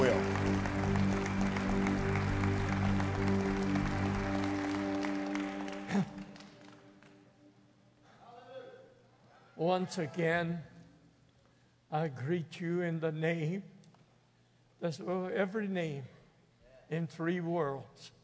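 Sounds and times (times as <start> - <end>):
audience applause: 0.0 - 7.2
speech: 9.6 - 10.7, 11.9 - 13.7, 14.8 - 16.1, 16.9 - 18.2.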